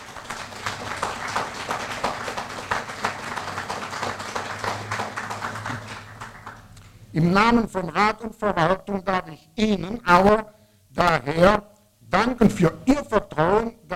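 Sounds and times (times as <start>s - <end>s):
audience applause: 0.0s - 6.8s
speech: 7.2s - 13.9s.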